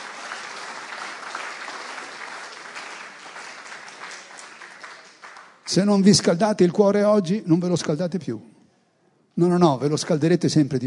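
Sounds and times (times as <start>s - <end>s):
audience applause: 0.0s - 5.8s
speech: 5.7s - 8.5s, 9.4s - 10.8s.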